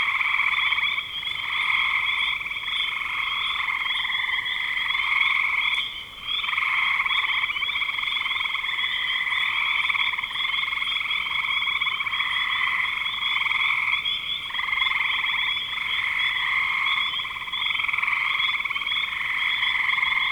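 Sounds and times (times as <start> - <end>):
frogs trilling in chorus: 0.0 - 20.2.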